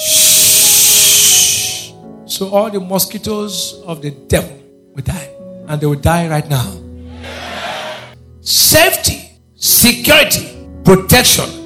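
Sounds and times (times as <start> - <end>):
voice imitating an insecticide spray hiss: 0.0 - 2.0
speech: 2.4 - 6.8, 8.5 - 11.6.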